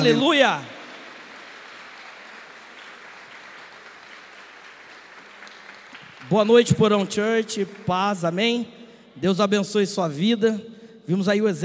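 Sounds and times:
speech: 0.0s - 0.7s, 6.3s - 11.6s
audience applause: 0.0s - 8.3s.

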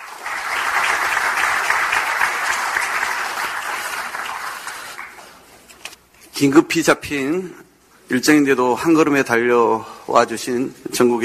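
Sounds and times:
audience applause: 0.0s - 5.4s
speech: 6.4s - 11.2s.

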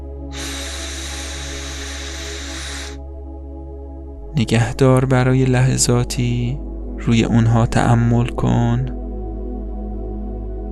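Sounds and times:
low sustained drone: 0.0s - 4.5s
deep inhale during a guided breathing exercise: 0.3s - 3.2s
speech: 4.4s - 9.0s.

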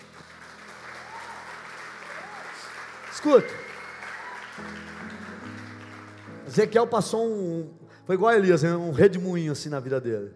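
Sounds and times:
church audience applauding: 0.0s - 6.8s
speech: 3.2s - 3.7s, 6.5s - 10.3s.

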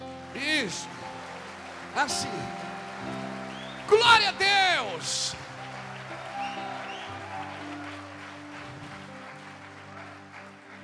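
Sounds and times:
audience applauding: 0.0s - 10.8s
low sustained keyboard notes: 0.0s - 10.8s
speech: 0.4s - 1.1s, 2.0s - 3.3s, 3.9s - 5.5s.

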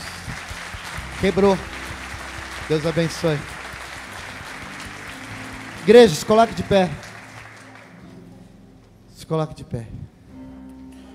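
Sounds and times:
audience applause: 0.0s - 8.3s
speech: 1.2s - 1.8s, 2.7s - 3.5s, 5.8s - 7.0s, 9.3s - 10.1s.

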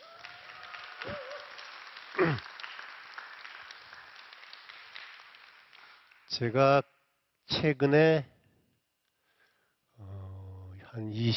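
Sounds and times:
audience clapping after poem recital: 0.0s - 6.8s
speech: 2.2s - 2.5s, 6.4s - 6.9s, 7.5s - 8.3s, 11.0s - 11.3s.

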